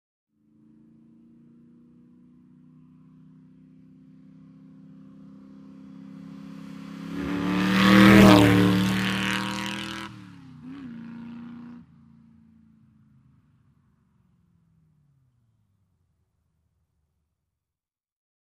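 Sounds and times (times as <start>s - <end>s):
car passing by fast: 4.8s - 11.9s.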